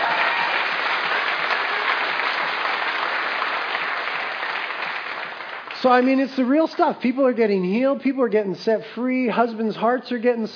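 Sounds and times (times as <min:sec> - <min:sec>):
audience applause: 0:00.0 - 0:06.2
speech: 0:05.8 - 0:10.5.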